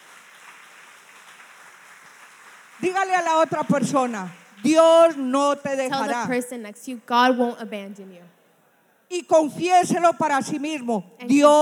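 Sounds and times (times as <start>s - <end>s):
crowd clapping: 0.0s - 6.4s
speech: 2.8s - 8.4s, 9.1s - 11.6s.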